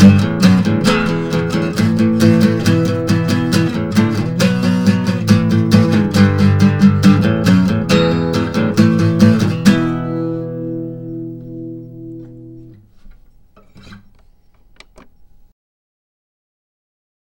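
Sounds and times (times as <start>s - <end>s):
rock tune: 0.0s - 12.8s.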